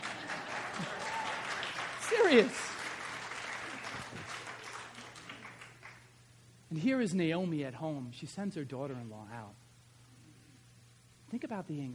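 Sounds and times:
women in audience clapping: 0:00.0 - 0:06.1
speech: 0:02.3 - 0:02.7, 0:06.8 - 0:09.6, 0:11.3 - 0:11.9.

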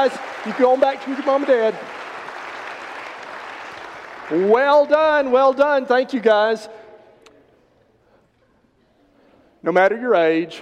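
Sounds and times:
speech: 0:00.0 - 0:02.0, 0:04.3 - 0:06.8, 0:09.6 - 0:10.6
audience applause: 0:00.0 - 0:05.4.

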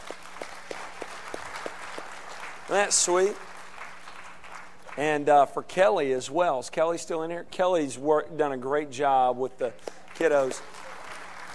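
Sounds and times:
audience applause for children after a church Christmas program: 0:00.0 - 0:05.0, 0:10.0 - 0:11.5
speech: 0:02.7 - 0:03.5, 0:05.0 - 0:10.7.

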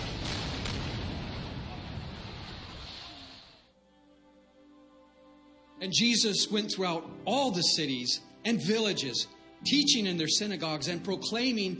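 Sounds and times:
artillery guns firing near the Cambodian border: 0:00.0 - 0:02.6
speech: 0:05.8 - 0:11.7.

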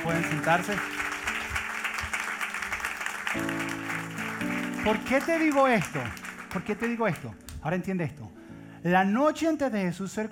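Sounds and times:
speech: 0:00.0 - 0:01.1, 0:04.8 - 0:10.3
applause: 0:00.0 - 0:07.6.

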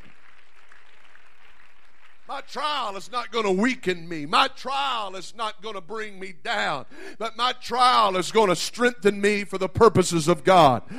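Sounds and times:
audience clapping hands: 0:00.0 - 0:03.0
speech: 0:02.3 - 0:10.9.

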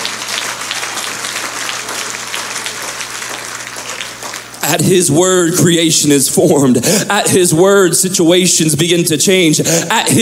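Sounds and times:
audience clapping hands: 0:00.0 - 0:05.0
speech: 0:04.7 - 0:10.1.

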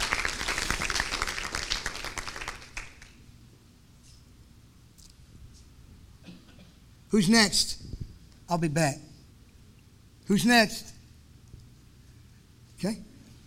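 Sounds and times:
audience applause: 0:00.0 - 0:03.2
speech: 0:07.1 - 0:07.8, 0:08.5 - 0:09.1, 0:10.3 - 0:11.0, 0:12.8 - 0:13.1.

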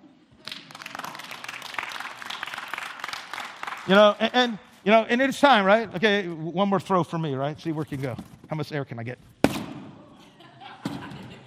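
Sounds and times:
audience clapping: 0:00.3 - 0:05.0
speech: 0:03.9 - 0:09.3
laughter: 0:10.0 - 0:11.4.

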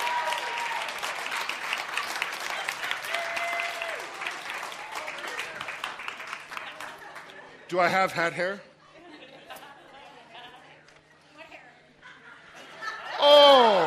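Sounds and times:
audience round of applause: 0:00.0 - 0:07.4
speech: 0:07.7 - 0:08.7
laughter: 0:08.8 - 0:10.9, 0:11.9 - 0:13.8.

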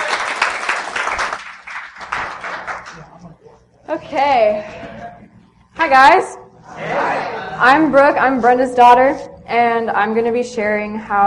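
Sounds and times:
audience applause: 0:00.0 - 0:03.0
speech: 0:03.9 - 0:04.9, 0:05.8 - 0:07.0, 0:07.6 - 0:11.2.

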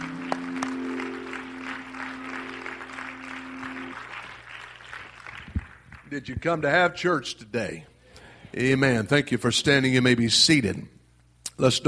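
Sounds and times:
audience clapping hands: 0:00.0 - 0:06.4
speech: 0:06.1 - 0:07.9, 0:08.5 - 0:11.0, 0:11.6 - 0:11.8.

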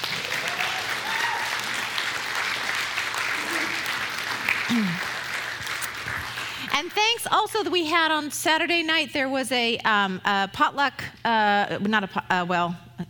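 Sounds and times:
audience applause: 0:00.0 - 0:06.7
cheers and whoops: 0:00.1 - 0:02.0
speech: 0:04.7 - 0:05.1, 0:06.8 - 0:12.8.

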